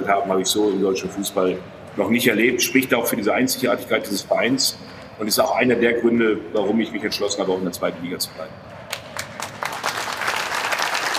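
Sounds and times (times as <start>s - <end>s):
speech: 0.0s - 8.7s
studio audience applause on a German football talk show: 8.9s - 11.1s.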